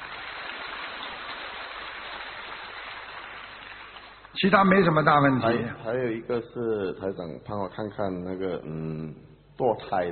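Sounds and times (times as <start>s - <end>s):
applause: 0.0s - 4.4s
speech: 4.4s - 10.1s.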